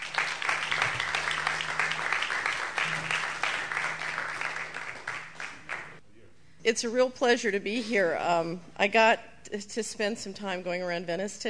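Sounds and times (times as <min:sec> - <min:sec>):
audience applause welcoming a speaker at an event in Venice: 0:00.0 - 0:06.0
speech: 0:06.7 - 0:11.4.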